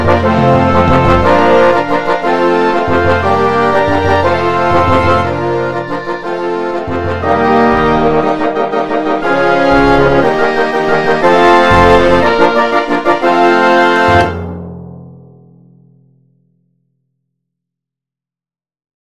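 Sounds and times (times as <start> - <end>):
fanfare for symphonic wind orchestra: 0.0 - 14.6.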